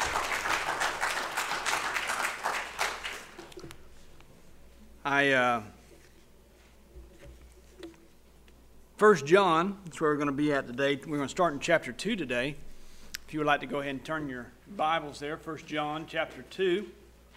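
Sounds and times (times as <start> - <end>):
audience applause: 0.0 - 3.7
speech: 5.1 - 5.8, 9.0 - 12.6, 13.3 - 17.0.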